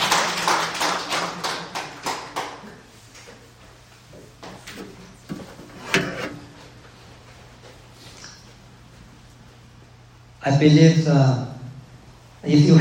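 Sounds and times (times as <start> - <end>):
audience hand clapping: 0.0 - 2.8
speech: 10.4 - 11.5, 12.4 - 12.7.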